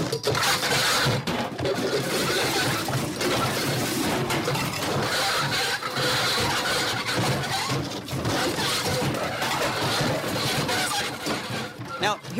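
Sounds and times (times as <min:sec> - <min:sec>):
truck scraping while turning into driveway: 0:00.0 - 0:12.3.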